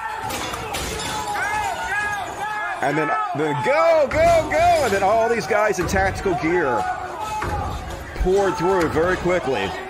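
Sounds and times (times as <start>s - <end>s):
windows being smashed, glass breaking: 0.2s - 2.2s
speech: 2.8s - 7.0s, 8.2s - 9.8s.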